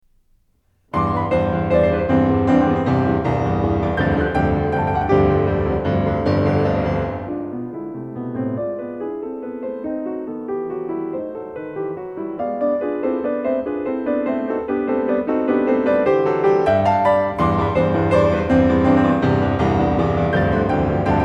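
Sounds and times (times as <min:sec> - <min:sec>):
piano variations in C: 0:00.2 - 0:21.2.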